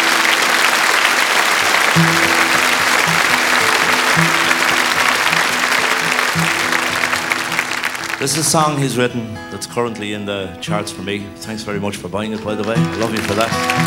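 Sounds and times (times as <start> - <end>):
audience round of applause: 0.0 - 8.8, 12.4 - 13.8
speech: 2.0 - 2.2, 8.2 - 13.8.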